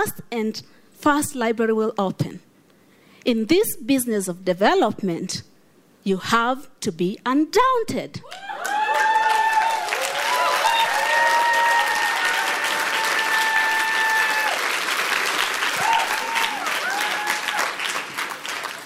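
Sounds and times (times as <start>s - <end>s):
speech: 0.0s - 2.5s, 3.2s - 8.6s
cheers and whoops: 8.2s - 14.8s, 15.6s - 18.0s
large audience applause: 8.3s - 18.8s.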